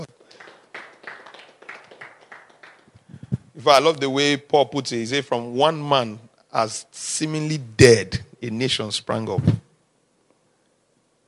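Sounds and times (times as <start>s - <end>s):
faint audience clapping during a church sermon: 0.0s - 3.4s
speech: 3.6s - 9.6s.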